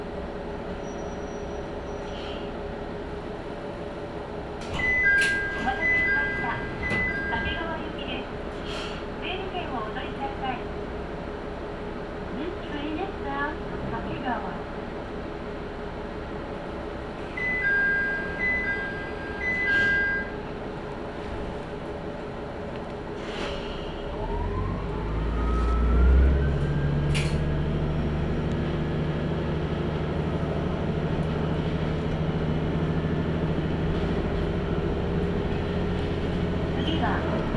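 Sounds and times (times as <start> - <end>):
Tenryu Hamanako Railway train rumble: 0.0 - 37.5
two-tone chime: 4.8 - 7.6.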